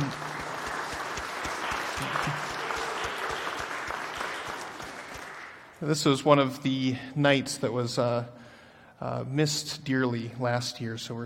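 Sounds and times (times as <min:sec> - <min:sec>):
round of applause: 0:00.0 - 0:05.8
speech: 0:05.8 - 0:08.4, 0:09.0 - 0:11.2.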